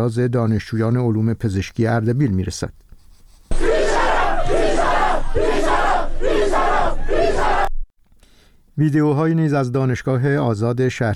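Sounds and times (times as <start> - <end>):
speech: 0.0 - 2.8, 8.8 - 11.1
students chanting protest slogans: 3.5 - 7.7.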